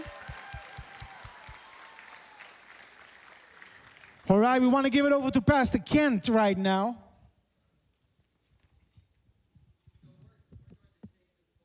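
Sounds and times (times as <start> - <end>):
audience applause for graduates at a graduation ceremony: 0.0 - 4.7
speech: 4.3 - 7.0.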